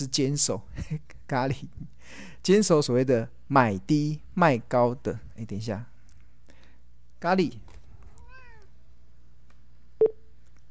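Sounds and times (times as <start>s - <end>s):
speech: 0.0s - 5.9s, 7.2s - 7.6s
low hum: 0.0s - 10.6s
cat meowing: 8.1s - 8.8s.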